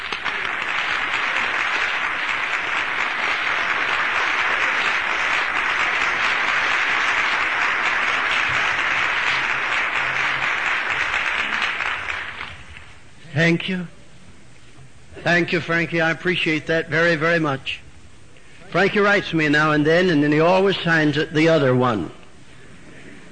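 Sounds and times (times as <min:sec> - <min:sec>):
audience applause welcoming a preacher at an evening service: 0:00.0 - 0:12.9
speech: 0:13.4 - 0:14.0, 0:15.2 - 0:17.8, 0:18.7 - 0:22.2.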